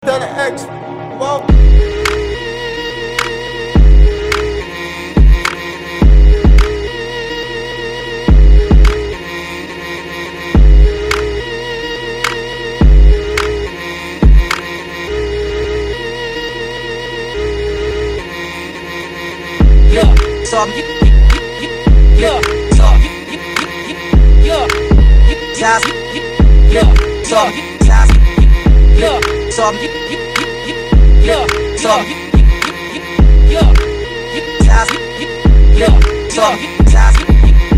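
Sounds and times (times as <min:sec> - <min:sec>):
hip hop music: 0:00.0 - 0:37.7.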